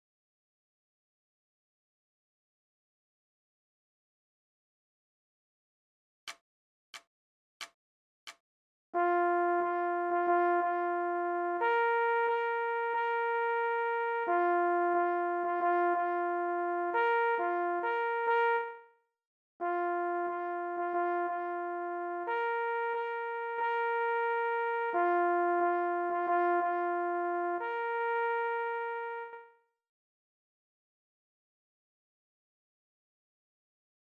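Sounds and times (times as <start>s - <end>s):
leggiero signal horn: 9.0s - 18.9s, 19.6s - 29.6s.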